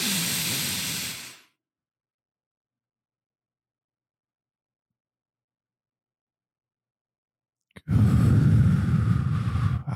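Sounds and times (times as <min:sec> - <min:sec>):
deep breath drawn in through the nose: 0:00.0 - 0:01.5, 0:07.8 - 0:09.9.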